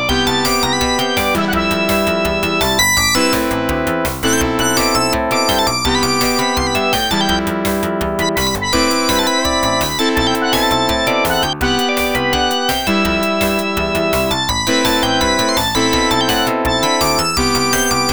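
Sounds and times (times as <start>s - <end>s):
commercial rhythm music: 0.0s - 18.1s.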